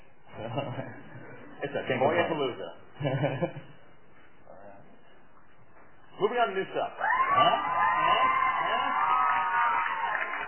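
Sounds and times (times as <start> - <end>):
speech: 0.5 - 1.0, 1.6 - 3.8, 6.2 - 8.4
crowd cheering: 7.0 - 10.4
yells and whoops: 7.0 - 10.4.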